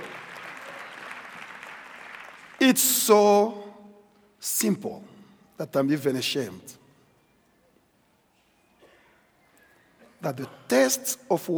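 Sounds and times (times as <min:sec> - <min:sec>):
audience applause: 0:00.0 - 0:02.8
speech: 0:02.6 - 0:03.7, 0:04.4 - 0:06.8, 0:10.2 - 0:11.5.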